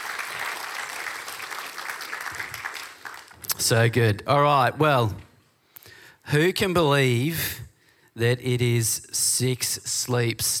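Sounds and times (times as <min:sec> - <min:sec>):
audience clapping: 0:00.0 - 0:03.8
speech: 0:03.6 - 0:05.3, 0:06.3 - 0:07.6, 0:08.2 - 0:10.5.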